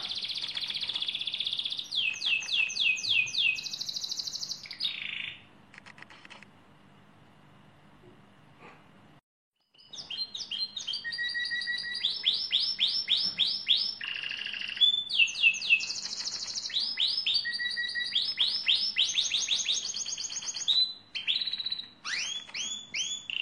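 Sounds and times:
lizard canary song: 0.0s - 5.5s, 9.7s - 23.4s
faint low hum: 0.0s - 9.2s.

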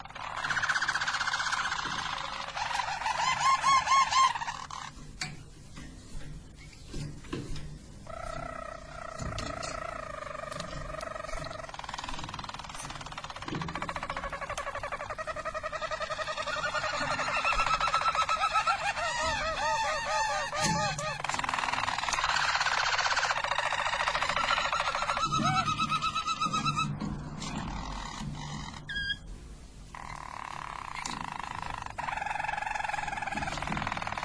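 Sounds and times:
Harz Roller canary singing a rolling trill: 0.0s - 34.2s.

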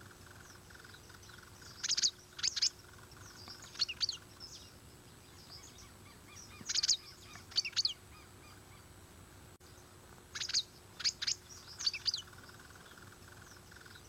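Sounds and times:
dragon bird singing high-pitched tweets: 0.0s - 8.9s, 9.6s - 14.0s
faint background hiss: 0.0s - 14.0s.

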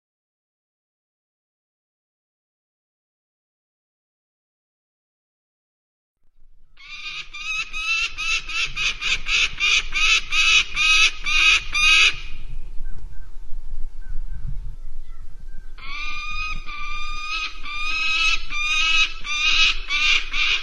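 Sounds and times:
common kestrel calling: 6.8s - 13.0s, 15.0s - 20.6s.

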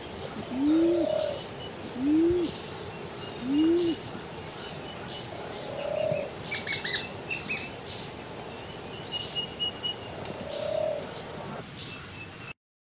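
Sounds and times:
collared dove singing: 0.0s - 11.6s.

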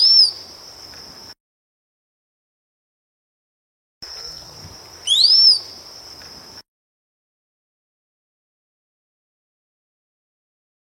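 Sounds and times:
rose-collared piha upswept whistle: 0.0s - 0.4s, 5.0s - 5.7s
high steady insect tone: 0.0s - 1.4s, 4.0s - 6.7s.

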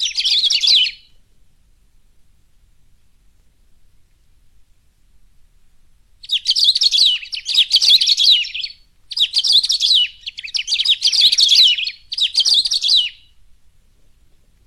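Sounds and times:
Saffron-billed sparrow singing rapid tangled twittering phrases: 0.0s - 1.2s, 6.2s - 13.4s.

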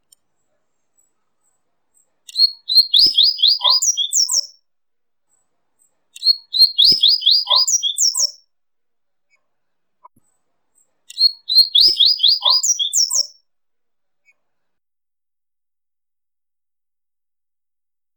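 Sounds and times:
coleirinho singing: 2.0s - 4.6s, 5.8s - 8.4s, 10.8s - 13.4s.

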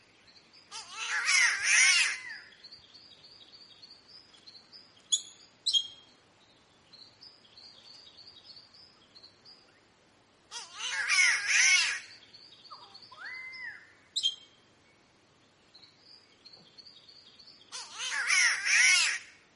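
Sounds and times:
other birds giving high chips and soft whistles: 0.0s - 9.9s, 10.5s - 19.4s
green catbird raspy mewing wail: 0.8s - 2.3s, 10.5s - 12.1s, 17.8s - 19.3s.

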